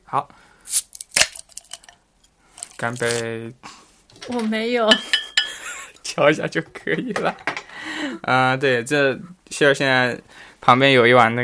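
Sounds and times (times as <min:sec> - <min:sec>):
speech: 0:00.1 - 0:00.9, 0:02.8 - 0:03.7, 0:04.3 - 0:05.1, 0:06.2 - 0:11.4
cola bottle being opened: 0:00.7 - 0:02.0.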